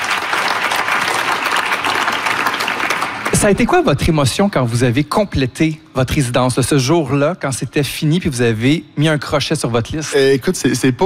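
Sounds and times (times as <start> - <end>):
audience applause: 0.0 - 3.9
speech: 3.4 - 11.0.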